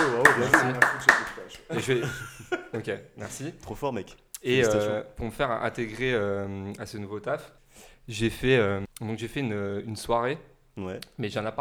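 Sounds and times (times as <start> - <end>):
hand claps: 0.0 - 2.4
laughter: 0.0 - 5.0
speech: 0.4 - 11.5.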